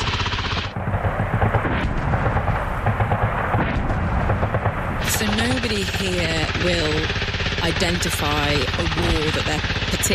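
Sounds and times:
artillery fire echoing across a valley: 0.7s - 6.1s
speech: 5.6s - 10.1s.

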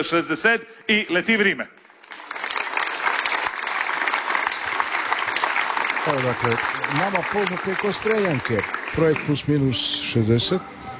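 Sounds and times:
speech: 0.0s - 1.8s, 6.1s - 10.8s
audience clapping for an all-women band at a live performance: 1.7s - 10.2s.

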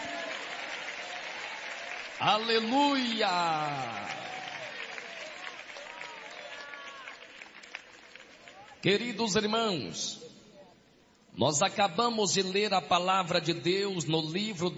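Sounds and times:
audience applause: 0.0s - 8.8s
speech: 2.2s - 4.2s, 8.8s - 10.2s, 11.4s - 14.7s.

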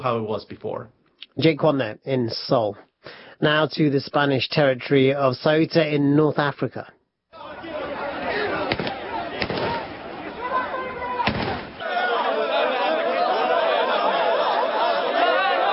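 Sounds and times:
speech: 0.0s - 7.0s
laughter: 7.4s - 15.7s
police firing gunshots in the air: 8.6s - 10.3s, 11.2s - 11.8s.

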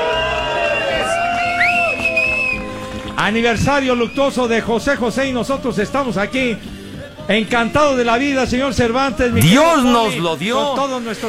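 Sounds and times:
crowd ovation and cheering: 0.0s - 4.1s
speech: 3.2s - 6.7s, 7.3s - 11.2s.

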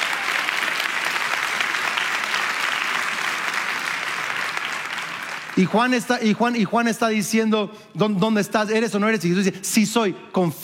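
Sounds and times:
audience applauding: 0.0s - 6.2s
speech: 5.6s - 10.6s.

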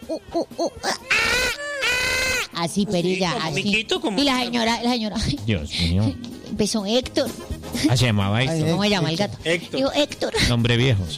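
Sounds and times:
voice imitating a monkey's cry: 0.0s - 2.6s
speech: 0.1s - 1.6s, 2.6s - 11.1s.

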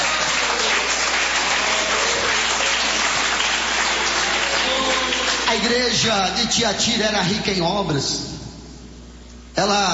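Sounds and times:
audience clapping in worship: 0.0s - 5.9s
speech: 5.6s - 8.3s, 9.6s - 9.9s.

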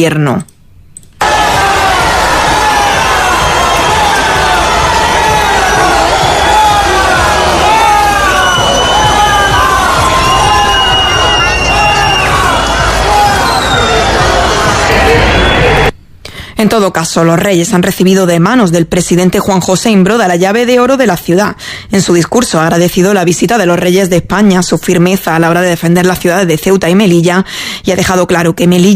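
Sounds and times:
speech: 0.0s - 0.5s, 16.6s - 28.9s
high-pitched shouts and whoops: 1.2s - 15.9s
large crowd cheering and applauding: 1.2s - 15.9s.

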